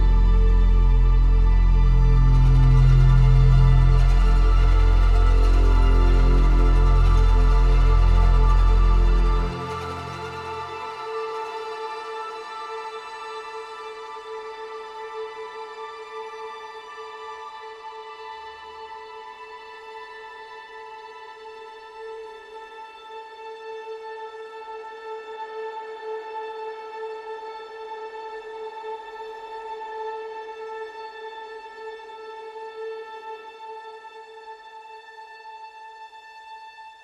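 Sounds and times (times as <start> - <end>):
cinematic underscore: 0.0 - 12.8.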